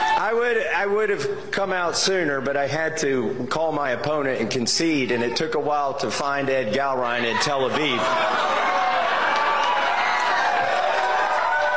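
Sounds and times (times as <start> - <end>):
crowd cheering: 0.0 - 0.4, 7.3 - 11.7
speech: 0.2 - 8.7.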